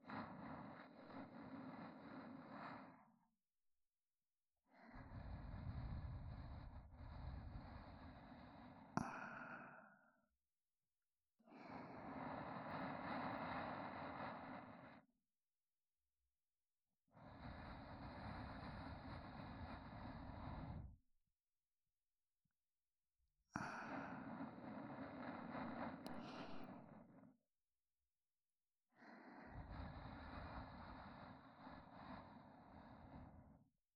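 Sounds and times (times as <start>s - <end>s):
looping sleep companion audio track with reversed position: 0.0s - 3.3s, 4.7s - 10.4s, 11.4s - 15.2s, 17.0s - 21.0s, 23.5s - 27.4s, 28.9s - 33.8s.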